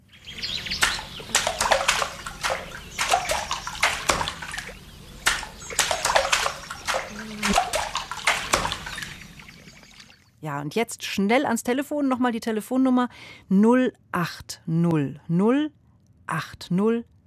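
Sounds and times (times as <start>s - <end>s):
paddle striking water in a rhythm: 0.6s - 10.1s
speech: 10.5s - 17.1s.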